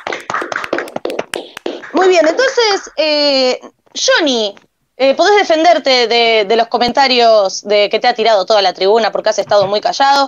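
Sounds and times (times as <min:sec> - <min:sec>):
applause: 0:00.0 - 0:02.0
speech: 0:02.0 - 0:10.2.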